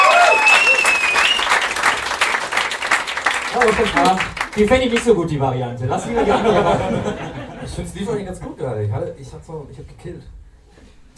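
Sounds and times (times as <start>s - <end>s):
whistle: 0.0s - 1.8s
audience applause: 0.0s - 5.1s
speech: 3.8s - 10.4s
laughter: 6.0s - 7.8s.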